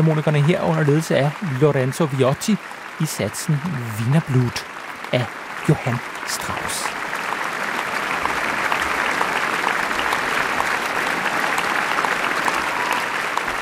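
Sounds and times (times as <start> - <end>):
speech: 0.0 - 6.8
large concert audience applause: 0.0 - 13.6.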